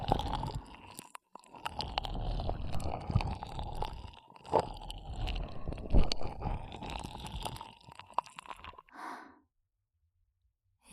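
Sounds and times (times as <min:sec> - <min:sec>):
finger ear cleaning on the left side: 0:00.0 - 0:08.7.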